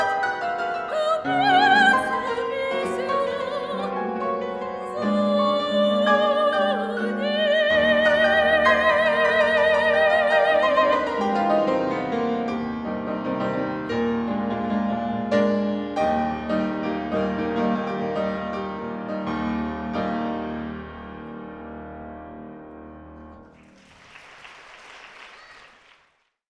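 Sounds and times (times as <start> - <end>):
soprano singing: 0.0 - 12.1
fortepiano: 0.0 - 24.8.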